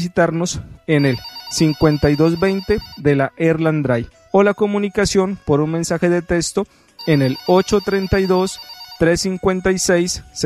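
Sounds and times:
speech: 0.0s - 10.4s
telephone ringing with an incoming call to a Spanish-language radio show: 1.0s - 3.0s, 7.0s - 9.5s.

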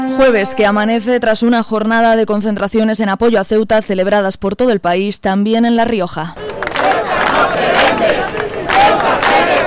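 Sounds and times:
speech: 0.2s - 6.6s, 7.4s - 9.6s
crowd shouting at rally: 6.4s - 9.6s.

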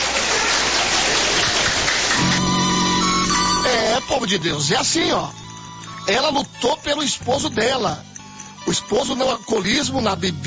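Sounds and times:
congregation clapping: 0.0s - 4.5s
speech: 4.2s - 5.5s, 6.1s - 10.4s.

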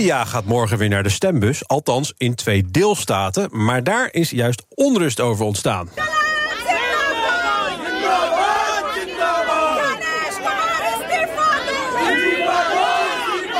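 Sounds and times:
speech: 0.0s - 6.3s
protesters shouting and chanting in a demonstration: 5.8s - 13.5s.

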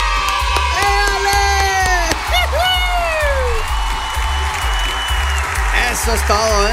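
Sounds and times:
high whoops: 0.0s - 5.6s
crowd applause and cheering: 0.0s - 6.7s
drawn-out shout gliding downward: 0.7s - 3.6s
speech: 6.0s - 6.7s.

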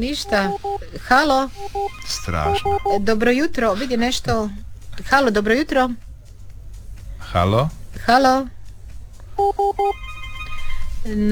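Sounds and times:
electronic two-tone chirp beeps: 0.0s - 0.9s, 1.5s - 3.3s, 9.4s - 11.0s
steady high tone: 0.0s - 3.4s, 9.4s - 11.2s
speech: 0.0s - 6.0s, 7.3s - 8.6s, 9.4s - 10.0s, 11.0s - 11.2s
telephone ringing with an incoming call: 0.1s - 0.9s, 1.5s - 3.2s, 9.4s - 11.1s.

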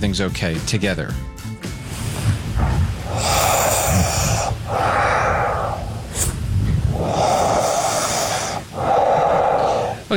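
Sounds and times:
speech: 0.0s - 1.3s
sleeping person breathing and snoring: 2.3s - 10.1s.

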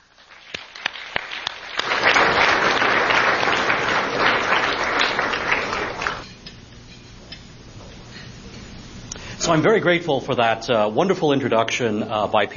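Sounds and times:
audience applause welcoming a panel at a Washington, D.C. event: 0.0s - 6.2s
speech: 9.5s - 12.5s.

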